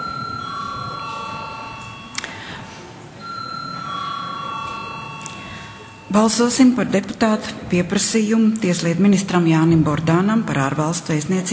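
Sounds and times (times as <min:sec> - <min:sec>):
electric parliament chamber bell ringing: 0:00.0 - 0:07.1
speech: 0:06.1 - 0:11.5.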